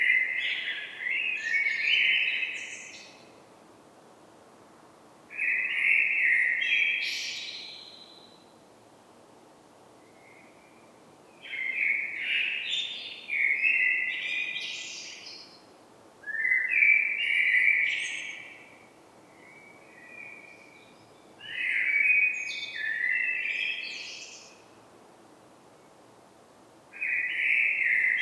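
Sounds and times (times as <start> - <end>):
common blackbird song: 0.0 - 3.4, 5.3 - 8.5, 10.1 - 24.8, 27.0 - 28.1.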